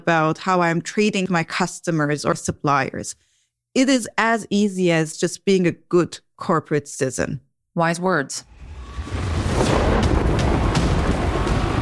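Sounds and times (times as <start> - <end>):
speech: 0.0 - 8.5
thunder sound effect: 8.5 - 11.8.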